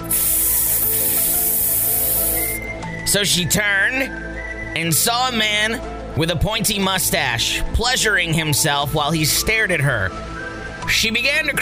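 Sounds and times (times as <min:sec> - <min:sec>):
loud hissing: 0:00.0 - 0:02.6
speech: 0:03.1 - 0:10.3, 0:10.9 - 0:11.6.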